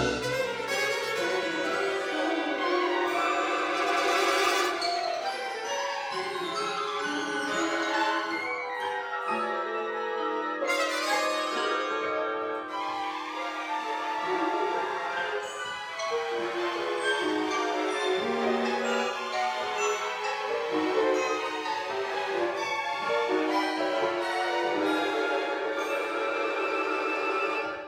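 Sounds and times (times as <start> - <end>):
orchestra playing a pensive concerto: 0.0 - 27.8.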